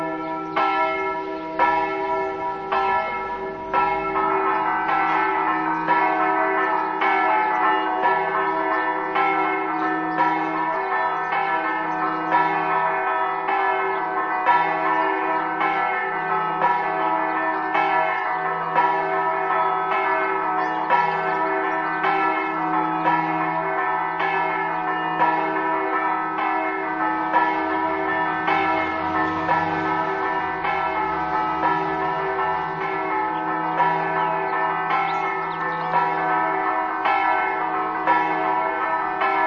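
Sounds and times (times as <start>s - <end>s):
bells ringing: 0.0s - 39.4s.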